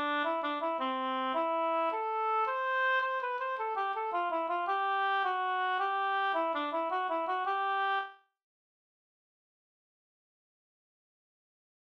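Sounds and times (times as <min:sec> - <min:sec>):
polska dance tune: 0:00.0 - 0:08.1.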